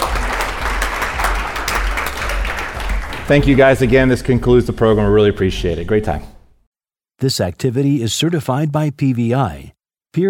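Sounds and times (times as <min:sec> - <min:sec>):
audience applause: 0:00.0 - 0:04.6
speech: 0:03.3 - 0:06.3, 0:07.2 - 0:10.2.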